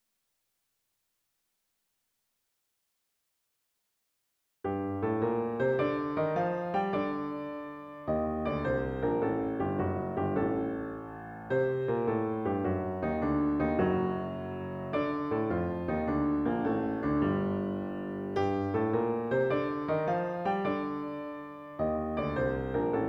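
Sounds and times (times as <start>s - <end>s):
piano piece: 4.6s - 23.0s.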